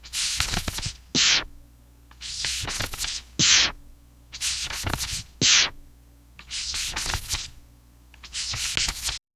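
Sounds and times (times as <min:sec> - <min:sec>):
gentle rhythmic page turns: 0:00.0 - 0:01.5, 0:02.1 - 0:03.8, 0:04.4 - 0:05.8, 0:06.4 - 0:07.6, 0:08.2 - 0:09.2.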